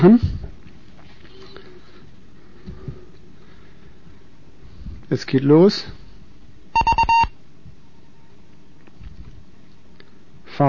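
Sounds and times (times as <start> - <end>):
speech: 0.0 - 0.3, 5.1 - 6.0
Morse code beeps: 6.8 - 7.3.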